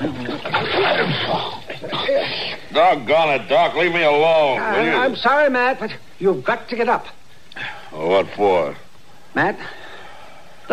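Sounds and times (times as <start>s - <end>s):
water splashed onto a sleeping man's face: 0.0s - 1.9s
speech: 2.8s - 7.2s, 7.9s - 9.8s.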